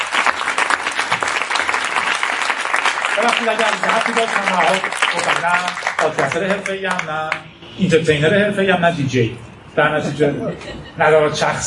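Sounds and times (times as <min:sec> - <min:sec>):
audience clapping: 0:00.0 - 0:07.4
speech: 0:03.2 - 0:11.6.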